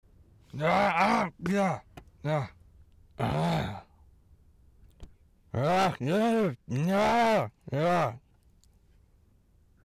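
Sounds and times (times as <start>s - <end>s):
man fighting and grunting: 0.5s - 2.6s, 3.2s - 3.9s, 5.6s - 8.2s.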